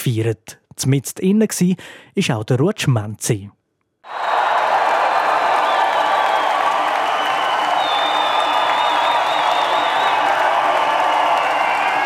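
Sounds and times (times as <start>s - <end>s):
speech: 0.0s - 4.3s
fans cheering and applauding: 4.0s - 12.0s.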